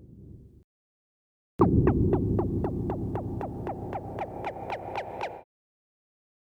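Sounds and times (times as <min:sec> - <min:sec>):
Korg Kaossilator synthesizer: 0:01.6 - 0:05.5.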